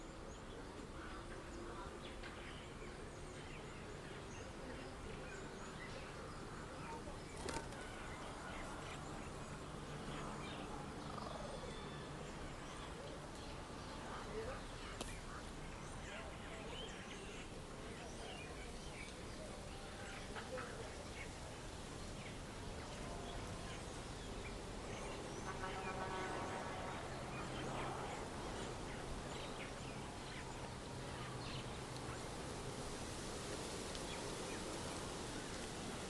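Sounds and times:
birds in a small town backyard in daytime: 0:00.0 - 0:36.0
distant traffic in a small town: 0:00.0 - 0:36.0
leaves rustling in wind: 0:00.0 - 0:36.0.

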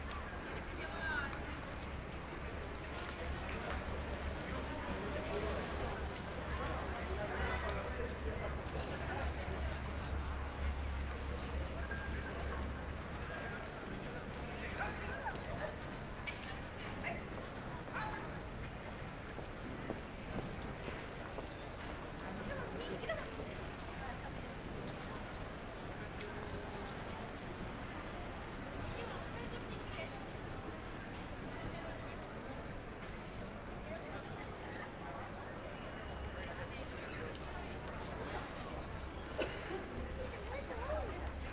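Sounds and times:
pedestrians walla in a Madrid Sol side street: 0:00.0 - 0:41.5
rain in a side street in Madrid Sol: 0:00.0 - 0:41.5.

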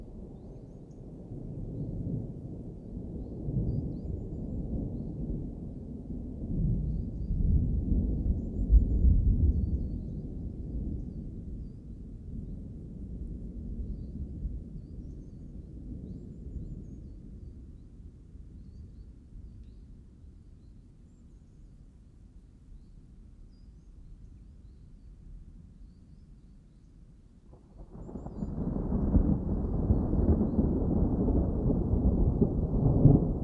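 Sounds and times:
summer thunderstorm in a mountain forest: 0:00.0 - 0:19.5, 0:27.5 - 0:33.4.

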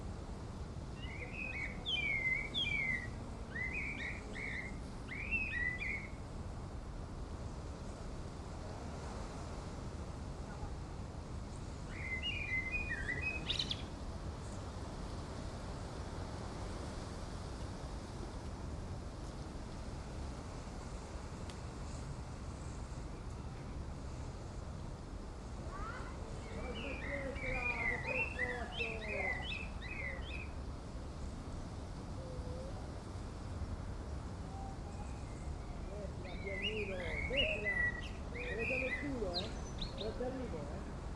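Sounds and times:
wind on the top of a mountain in Erice, Sicily, Italy: 0:00.0 - 0:41.1
birds on a mountain top in Erice, Sicily, Italy: 0:00.8 - 0:06.3, 0:11.4 - 0:17.0, 0:25.4 - 0:41.1
people chatting briefly on a mountain top in Erice, Sicily, Italy: 0:25.6 - 0:29.5, 0:35.9 - 0:40.9.

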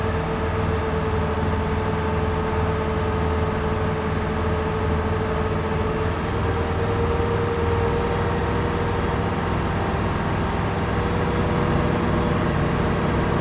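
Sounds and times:
Cigarette Top Gun engine starting, driving and stopping, onboard: 0:00.0 - 0:13.3.

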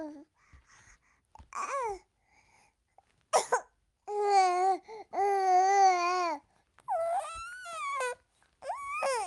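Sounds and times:
five-month-old baby babbling: 0:01.5 - 0:02.0, 0:04.1 - 0:09.2.

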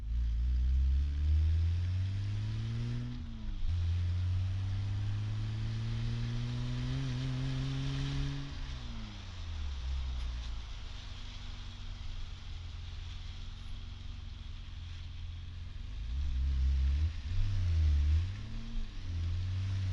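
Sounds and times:
BMW 1502 and BMW 520i exhaust: 0:00.0 - 0:19.9.

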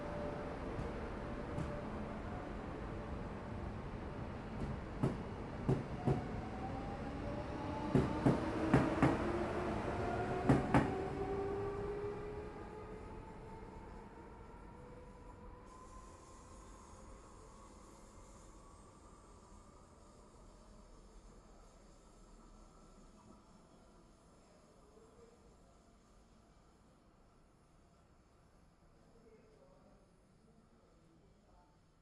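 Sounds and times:
train arriving and departing: 0:00.0 - 0:24.2.

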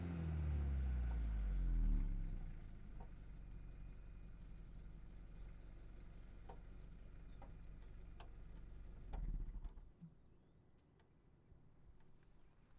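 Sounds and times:
VW Golf engine heard from outside starting, idling, blipping and switching off: 0:00.0 - 0:09.7.

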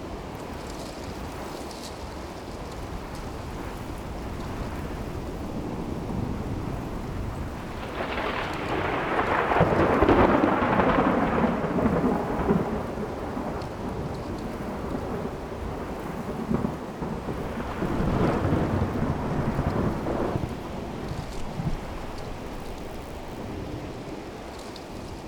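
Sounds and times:
distant thunder over plains: 0:03.7 - 0:24.6.

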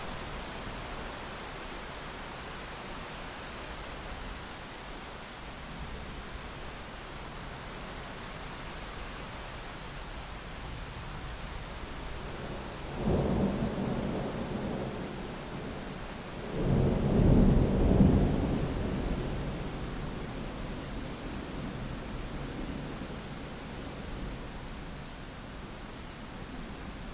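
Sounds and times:
distant thunderstorm: 0:12.4 - 0:24.4.

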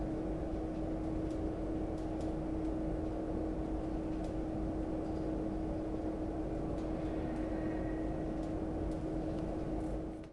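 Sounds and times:
industrial gas boiler room pipes and installations: 0:00.0 - 0:10.3.

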